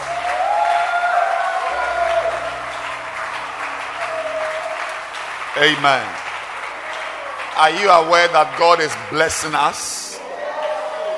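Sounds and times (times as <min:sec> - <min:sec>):
church congregation clapping hands: 0:00.0 - 0:11.1
speech: 0:05.6 - 0:06.2, 0:07.6 - 0:10.0.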